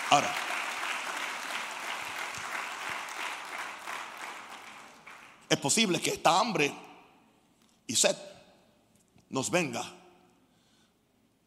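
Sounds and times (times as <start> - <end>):
audience applause: 0.0 - 5.5
speech: 0.1 - 0.5, 5.5 - 6.8, 7.9 - 8.3, 9.3 - 10.0.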